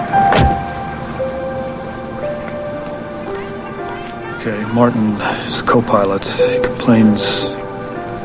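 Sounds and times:
car door closing: 0.2s - 0.8s
speech: 4.4s - 7.6s.

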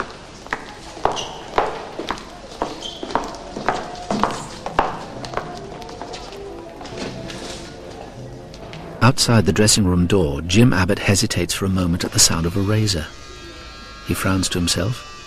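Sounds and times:
footsteps walking along a corridor: 0.0s - 9.0s
speech: 9.1s - 13.3s, 14.1s - 15.1s.

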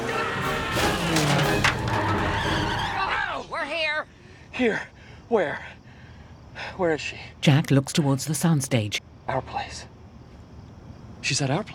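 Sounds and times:
car crashing through an entrance barrier: 0.0s - 3.0s
car engine and skidding crashing through a TV studio entrance barrier: 0.0s - 3.3s
speech: 4.6s - 5.7s, 6.6s - 9.9s, 11.2s - 11.7s.

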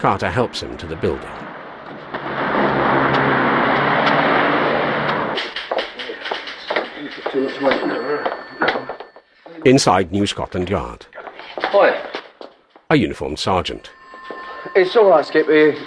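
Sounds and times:
speech: 0.0s - 1.5s, 7.1s - 8.9s, 9.6s - 11.1s, 11.7s - 12.1s, 12.9s - 14.0s, 14.6s - 15.8s
car engine of a car pulling up outside New Scotland Yard: 0.0s - 7.4s
road noise: 0.0s - 9.3s, 13.2s - 15.8s.

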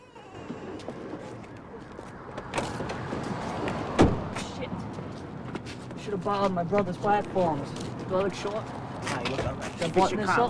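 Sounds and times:
faint shuffling: 0.0s - 10.4s
car rumbling to a stop: 0.1s - 10.3s
car doors opening and shutting: 0.2s - 4.6s
speech: 6.1s - 10.4s.

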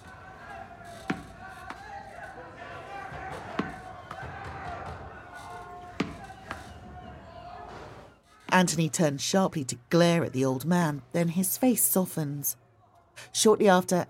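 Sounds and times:
dirty tennis ball bounced on a floor: 1.0s - 1.8s, 3.1s - 5.1s, 5.9s - 6.7s
speech: 8.6s - 12.6s, 13.4s - 14.0s.

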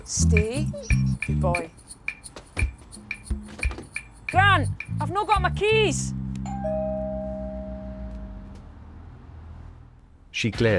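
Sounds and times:
speech: 0.0s - 1.8s, 4.3s - 6.2s, 10.4s - 10.7s
doorbell ringing: 6.4s - 8.6s.

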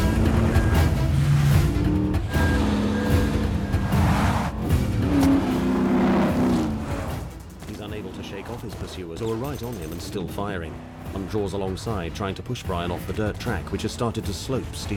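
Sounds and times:
Jeep engine roaring and revving on a muddy dirt track: 0.0s - 14.9s
speech: 9.6s - 14.9s.

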